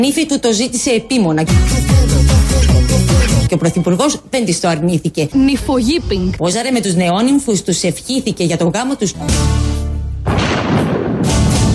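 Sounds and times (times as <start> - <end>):
speech: 0.0 - 9.7
thunderstorm thunder: 5.4 - 6.6, 10.2 - 11.7.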